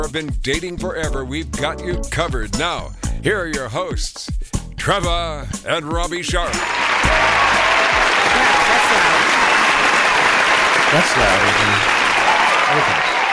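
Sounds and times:
speech: 0:00.1 - 0:09.2, 0:10.9 - 0:12.0, 0:12.7 - 0:13.1
loud audience applause: 0:06.6 - 0:13.3.

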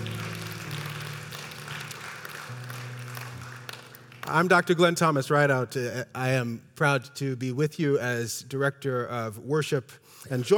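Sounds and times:
applause: 0:00.0 - 0:05.0
speech: 0:04.3 - 0:10.5.

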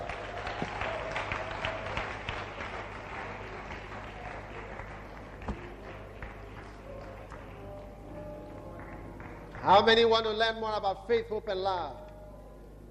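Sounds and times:
audience clapping: 0:00.0 - 0:10.4
speech: 0:09.7 - 0:12.1.

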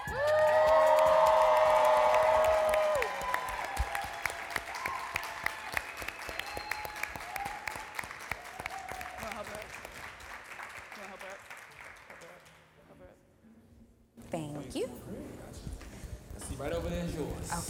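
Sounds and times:
audience applause: 0:00.0 - 0:12.7.

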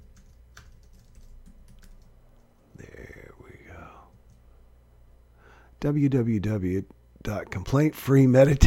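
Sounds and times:
faint typing on a computer keyboard: 0:00.0 - 0:02.1
speech: 0:05.8 - 0:08.6.

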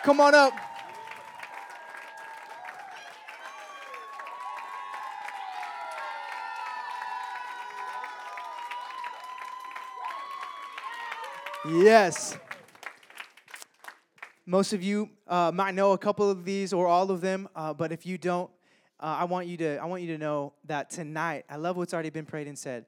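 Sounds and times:
speech: 0:00.0 - 0:00.7, 0:11.6 - 0:12.5, 0:14.5 - 0:22.8
crowd whooping and shouting: 0:00.0 - 0:12.6
audience clapping for high school student speakers: 0:00.0 - 0:14.5.

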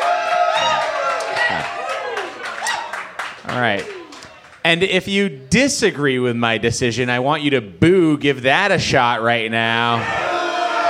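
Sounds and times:
audience cheering: 0:00.0 - 0:04.6, 0:10.0 - 0:10.8
speech: 0:03.5 - 0:04.0, 0:04.6 - 0:10.3.

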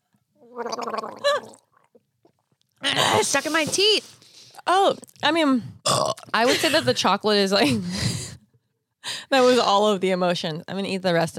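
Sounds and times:
blowing bubbles in a drink: 0:00.4 - 0:02.5
speech: 0:00.5 - 0:01.5, 0:03.2 - 0:04.1, 0:04.7 - 0:08.1, 0:09.3 - 0:11.3.

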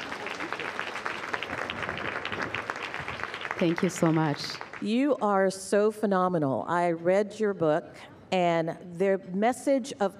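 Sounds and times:
audience applause: 0:00.0 - 0:04.9
speech: 0:03.6 - 0:10.1.

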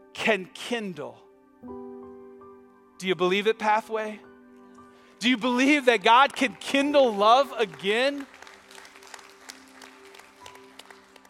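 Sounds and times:
speech: 0:00.2 - 0:01.8, 0:03.0 - 0:04.3, 0:05.2 - 0:08.4
audience applause: 0:05.5 - 0:11.2.

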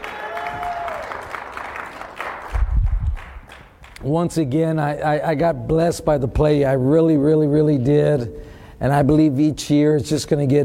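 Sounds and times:
low rumble of stomping or cheering: 0:00.0 - 0:01.8
audience applause: 0:00.0 - 0:04.0
speech: 0:04.0 - 0:10.6.

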